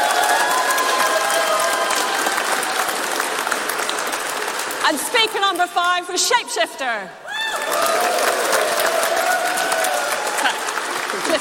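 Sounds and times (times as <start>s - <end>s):
crowd cheering with high whoop: 0.0s - 4.0s, 7.2s - 11.3s
crowd applause: 0.0s - 5.7s, 7.3s - 11.3s
speech: 4.9s - 7.9s.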